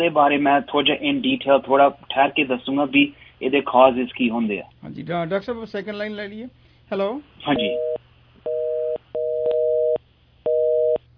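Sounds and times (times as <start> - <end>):
speech: 0.0 - 7.9
telephone busy tone after a call's line dropped: 7.5 - 11.0.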